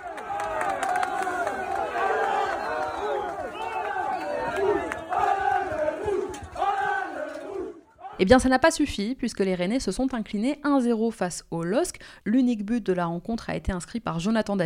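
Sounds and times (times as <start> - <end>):
football fans chanting greeting team bus: 0.0 - 8.3
speech: 8.2 - 14.6.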